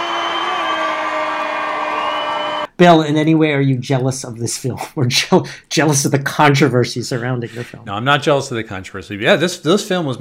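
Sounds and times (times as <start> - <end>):
crowd cheering and applauding: 0.0 - 2.7
speech: 2.8 - 10.1.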